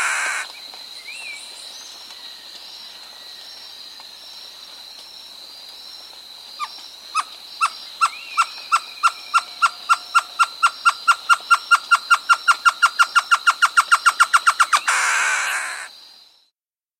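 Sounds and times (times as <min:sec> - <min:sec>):
Great Antshrike in South America: 0:00.0 - 0:00.5, 0:08.0 - 0:15.9.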